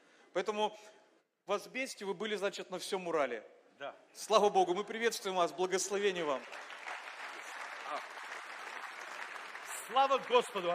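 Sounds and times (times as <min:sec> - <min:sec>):
speech: 0:00.4 - 0:06.8, 0:09.9 - 0:10.7
audience applause: 0:06.2 - 0:10.7.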